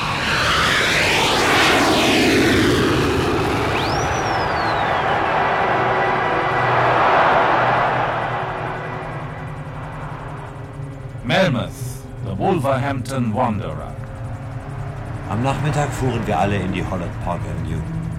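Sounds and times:
jumbo jet taking off from runway: 0.0s - 18.1s
speech: 12.7s - 13.8s, 15.3s - 18.0s.

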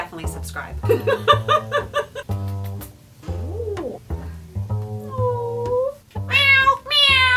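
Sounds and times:
laughter: 0.9s - 2.3s
cat meowing: 5.0s - 7.3s.

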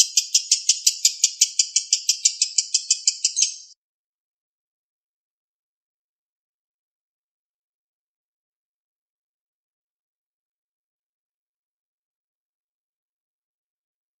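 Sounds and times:
Oriental magpie-robin singing fast high chirps and trills: 0.0s - 3.8s.

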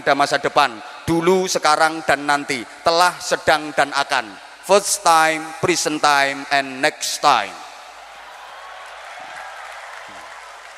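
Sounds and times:
speech: 0.0s - 7.6s
audience clapping: 8.0s - 10.7s.

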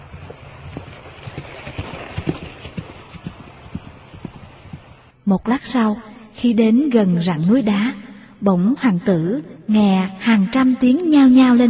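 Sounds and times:
broad rushing wind-like noise: 0.0s - 5.2s
hoofbeats of a horse galloping across a field with a rider: 0.0s - 5.2s
speech: 1.4s - 1.8s, 5.3s - 11.6s.

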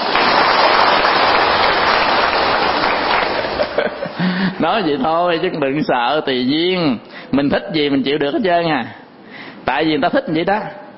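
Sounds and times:
crowd clapping: 0.0s - 4.1s
laughter: 2.8s - 4.6s
speech: 4.6s - 9.0s, 9.7s - 10.8s.

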